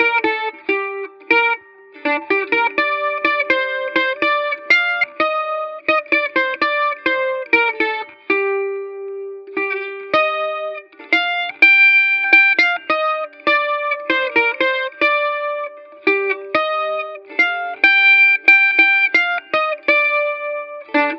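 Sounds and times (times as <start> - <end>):
mandolin playing a cartoon theme tune: 0.0 - 21.1.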